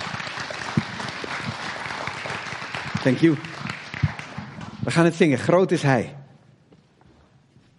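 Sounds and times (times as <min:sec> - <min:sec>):
gathered audience giving warm encouraging applause: 0:00.0 - 0:05.4
speech: 0:03.0 - 0:03.6, 0:04.9 - 0:06.2.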